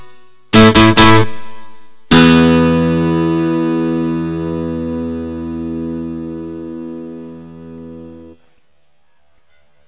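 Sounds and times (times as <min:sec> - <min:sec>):
electric guitar power chord: 0:02.1 - 0:08.4.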